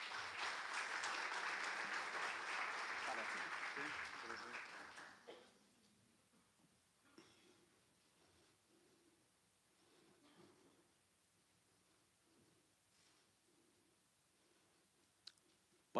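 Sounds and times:
crowd applauding: 0:00.0 - 0:05.4.

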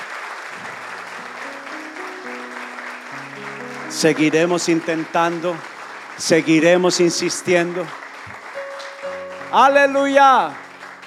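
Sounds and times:
audience applause: 0:00.0 - 0:11.0
speech: 0:03.9 - 0:08.0, 0:09.5 - 0:10.6.

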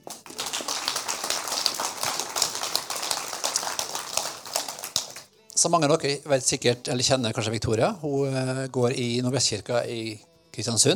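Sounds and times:
audience applause: 0:00.0 - 0:05.3
speech: 0:05.6 - 0:10.9.

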